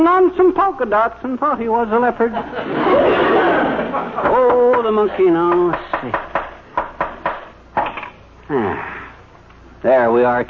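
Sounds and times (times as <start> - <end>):
speech: 0.0 - 6.3, 8.5 - 9.0, 9.8 - 10.4
laughter: 2.2 - 5.6
hammering into wood: 4.2 - 8.0.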